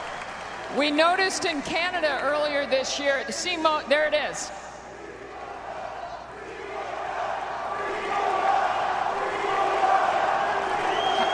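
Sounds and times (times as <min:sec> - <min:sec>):
speech: 0:00.7 - 0:04.6
tennis crowd cheering and screaming: 0:05.2 - 0:11.3.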